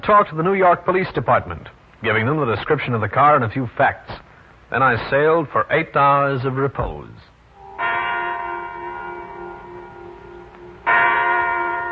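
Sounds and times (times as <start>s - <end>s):
speech: 0.0s - 7.3s
large clock bell striking the hour: 7.6s - 11.9s.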